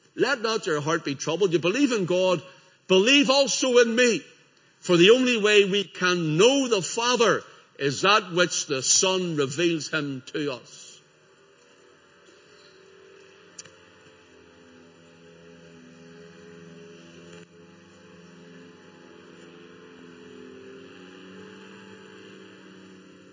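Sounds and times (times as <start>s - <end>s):
speech: 0.2s - 10.8s
distant small plane engine drone: 11.0s - 23.3s.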